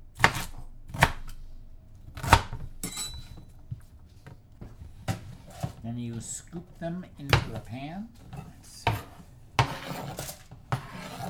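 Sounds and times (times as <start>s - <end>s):
food being roughly chopped with a knife on a board: 0.2s - 1.4s, 2.1s - 3.8s, 7.2s - 11.2s
speech: 5.8s - 8.9s.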